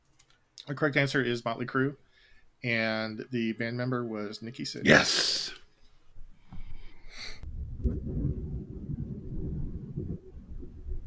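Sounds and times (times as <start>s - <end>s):
speech: 0.6s - 5.6s
thunder rumbling: 7.4s - 11.0s.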